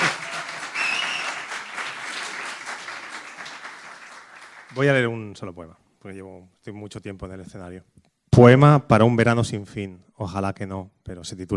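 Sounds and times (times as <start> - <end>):
audience applause: 0.0 - 4.9
speech: 4.8 - 11.5.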